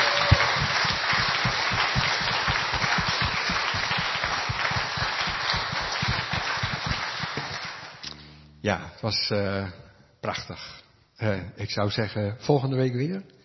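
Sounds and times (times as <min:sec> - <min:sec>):
audience applause: 0:00.0 - 0:08.0
speech: 0:08.6 - 0:13.4.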